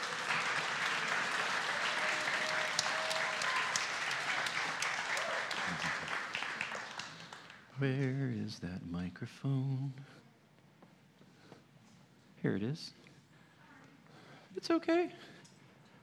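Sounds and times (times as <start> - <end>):
church congregation applauding leaders onto the stage: 0.0 - 8.3
speech: 7.8 - 10.2, 12.4 - 13.1, 14.6 - 15.4.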